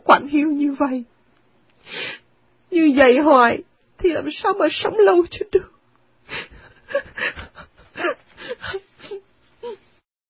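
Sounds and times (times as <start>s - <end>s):
speech: 0.1s - 1.2s, 1.8s - 5.7s
woman crying: 6.3s - 9.9s.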